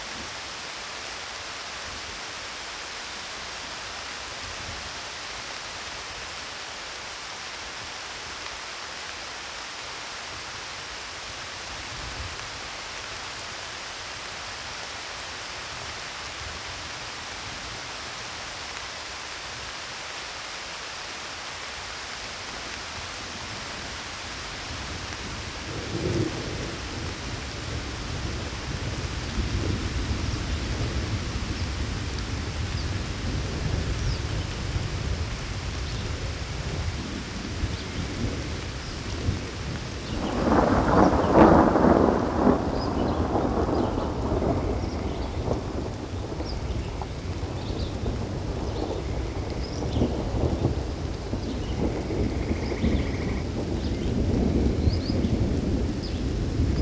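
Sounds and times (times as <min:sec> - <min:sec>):
thunderstorm: 0:24.8 - 0:56.8.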